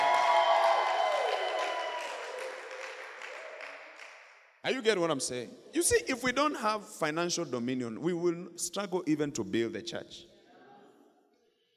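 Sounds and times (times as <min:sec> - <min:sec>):
cheering voices: 0:00.0 - 0:04.2
audience clapping: 0:00.0 - 0:04.5
speech: 0:04.6 - 0:10.3.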